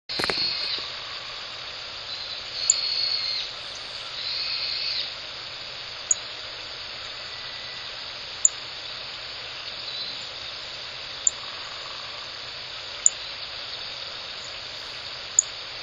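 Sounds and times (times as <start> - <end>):
Rustic bunting calls before leaving the roost in early morning: 0.0 - 5.3, 6.0 - 15.6.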